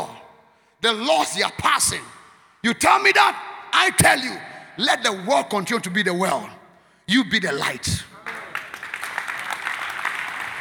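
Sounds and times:
speech: 0:00.8 - 0:08.0
audience clapping: 0:08.2 - 0:10.5.

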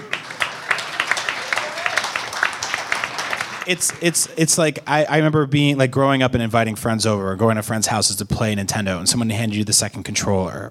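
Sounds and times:
audience clapping: 0:00.0 - 0:04.4
speech: 0:03.7 - 0:10.7.

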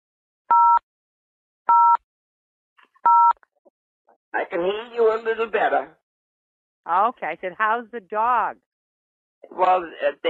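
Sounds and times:
telephone keypad dual-tone beeps: 0:00.5 - 0:00.8, 0:01.7 - 0:02.0, 0:03.1 - 0:03.4
speech: 0:04.3 - 0:06.0, 0:06.8 - 0:08.7, 0:09.4 - 0:10.2.

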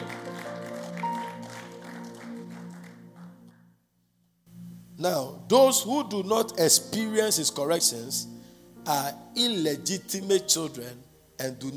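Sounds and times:
audience clapping: 0:00.0 - 0:03.7
speech: 0:05.0 - 0:11.7.

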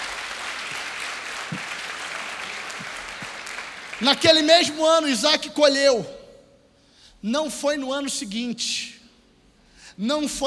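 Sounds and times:
audience applause: 0:00.0 - 0:04.5
speech: 0:04.0 - 0:06.2, 0:07.2 - 0:09.0, 0:10.0 - 0:10.4.

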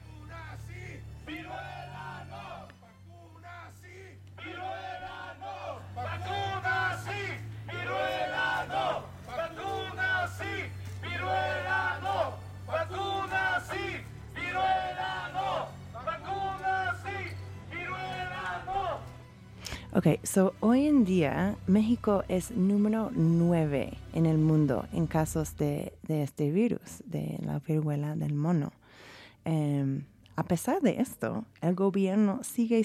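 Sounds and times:
protesters chanting: 0:00.0 - 0:19.2
speech: 0:20.0 - 0:28.8, 0:29.4 - 0:32.8.

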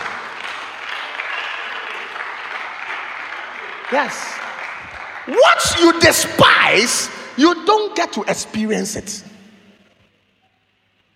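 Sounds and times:
audience clapping hands: 0:00.0 - 0:07.5
speech: 0:03.9 - 0:04.4, 0:05.3 - 0:09.3.

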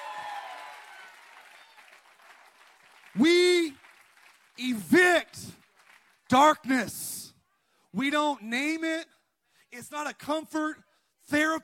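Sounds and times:
crowd clapping: 0:00.0 - 0:06.6
speech: 0:04.6 - 0:05.2, 0:06.3 - 0:07.0, 0:07.9 - 0:09.1, 0:09.7 - 0:11.6.

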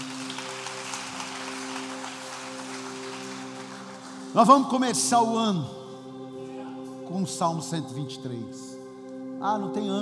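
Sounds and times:
audience applause: 0:00.0 - 0:04.9
speech: 0:04.4 - 0:05.8, 0:07.1 - 0:08.8, 0:09.4 - 0:10.0.

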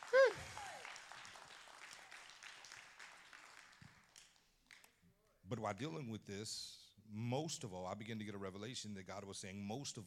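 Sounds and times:
audience clapping: 0:00.0 - 0:05.0
speech: 0:05.5 - 0:10.0.

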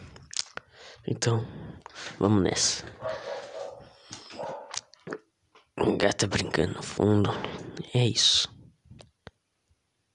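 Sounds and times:
speech: 0:01.0 - 0:03.3, 0:05.8 - 0:08.6
dog barking in the background: 0:03.0 - 0:04.8.

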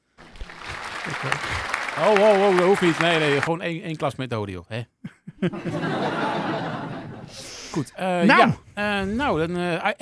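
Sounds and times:
short applause: 0:00.2 - 0:03.5
laughter: 0:00.5 - 0:03.4, 0:05.1 - 0:07.9
speech: 0:01.1 - 0:06.7, 0:07.3 - 0:09.9.

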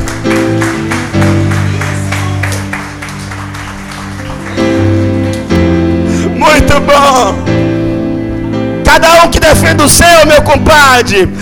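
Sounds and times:
audience applauding: 0:00.0 - 0:05.8
loud sustained keyboard chords: 0:00.0 - 0:11.4
speech: 0:09.8 - 0:11.4.

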